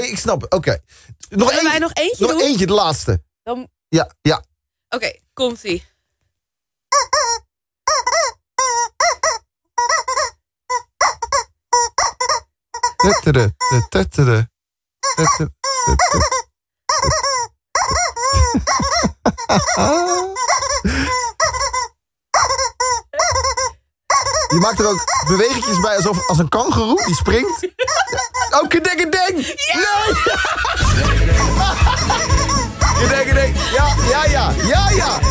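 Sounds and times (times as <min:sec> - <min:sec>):
speech: 0:00.1 - 0:05.9, 0:13.0 - 0:14.5, 0:15.1 - 0:21.7, 0:24.2 - 0:35.3
rubber toy chicken squeezed and released, squeaking: 0:06.9 - 0:14.0, 0:15.0 - 0:28.8, 0:31.9 - 0:35.3
laughter: 0:15.2 - 0:16.4, 0:18.3 - 0:21.2, 0:24.8 - 0:35.3.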